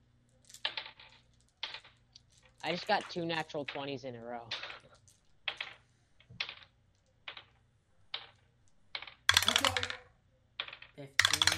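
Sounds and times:
dice rattling through a dice tower during a tabletop role-playing game: 0.3s - 11.5s
speech: 2.6s - 4.8s.

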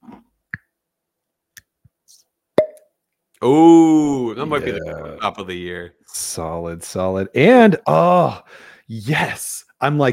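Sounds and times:
wax-topped bottle hollow pop: 2.6s - 2.9s
speech: 3.4s - 3.8s, 4.4s - 10.1s.

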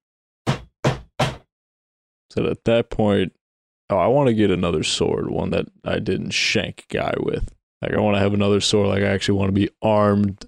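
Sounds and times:
loud knock on the front gate door: 0.5s - 1.5s
speech: 2.3s - 10.4s.

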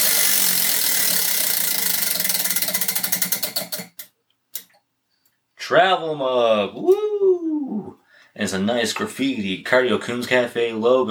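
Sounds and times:
prize wheel clicking as it spins for a café mug giveaway: 0.0s - 4.7s
speech: 5.7s - 7.4s, 8.4s - 11.0s.

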